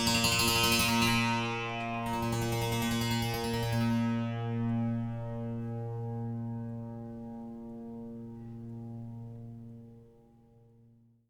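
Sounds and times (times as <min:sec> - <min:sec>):
monochord: 0:00.0 - 0:09.2.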